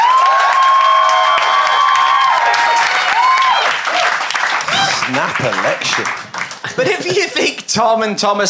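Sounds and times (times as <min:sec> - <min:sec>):
shrill whoops and cheers: 0:00.0 - 0:05.1
crowd applauding: 0:00.0 - 0:07.6
laughter: 0:04.6 - 0:07.7
speech: 0:05.3 - 0:06.2, 0:06.8 - 0:08.4.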